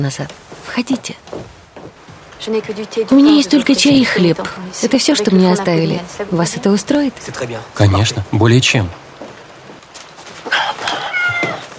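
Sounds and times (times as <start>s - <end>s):
speech: 0.0s - 1.6s, 2.4s - 9.0s
cat meowing: 10.5s - 11.7s.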